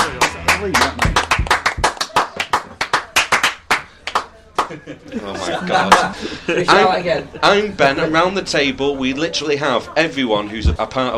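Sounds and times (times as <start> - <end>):
round of applause: 0.0 - 4.8
speech: 0.6 - 1.1, 4.7 - 11.1
laughter: 4.5 - 7.8.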